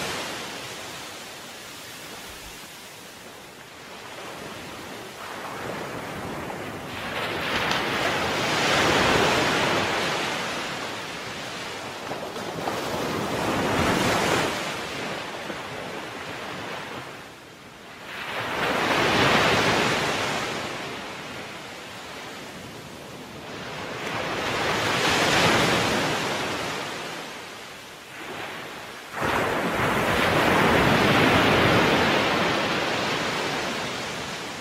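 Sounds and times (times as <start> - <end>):
ocean waves: 0.0 - 34.5.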